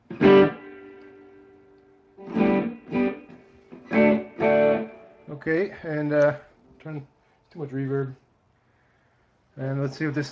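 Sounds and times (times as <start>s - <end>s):
overdriven electric guitar through a small tube amp: 0.0s - 5.4s
speech: 5.4s - 8.2s, 9.6s - 10.3s.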